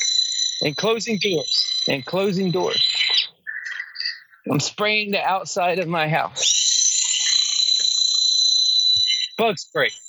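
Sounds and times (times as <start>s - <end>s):
birds chirping: 0.0s - 10.0s
speech: 0.6s - 3.2s, 4.5s - 6.7s, 9.4s - 10.0s.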